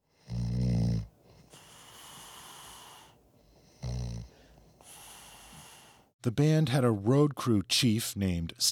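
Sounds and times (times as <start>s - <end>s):
man snoring while asleep in a recording studio: 0.1s - 6.1s
speech: 6.2s - 8.7s.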